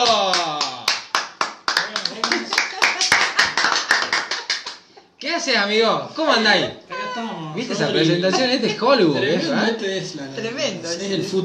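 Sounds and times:
crowd applauding: 0.0 - 4.9
speech: 5.4 - 11.4.

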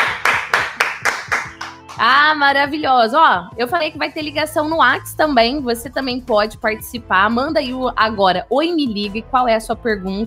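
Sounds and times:
hand claps: 0.0 - 2.1
speech: 2.0 - 10.2.

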